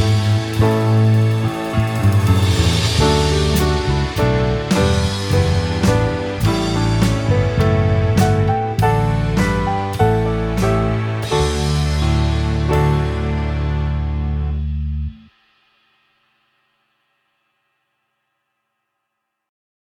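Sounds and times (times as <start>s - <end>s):
Christmas song backing track: 0.0s - 15.6s.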